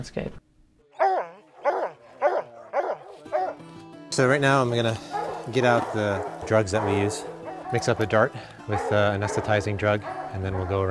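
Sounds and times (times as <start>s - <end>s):
speech: 0.0s - 0.4s, 4.2s - 10.8s
dog barking: 1.0s - 3.6s, 5.1s - 10.8s.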